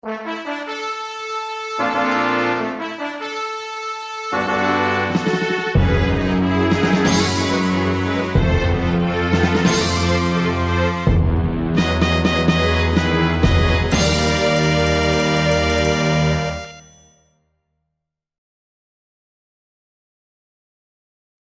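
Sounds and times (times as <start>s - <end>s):
fanfare: 0.0s - 17.1s.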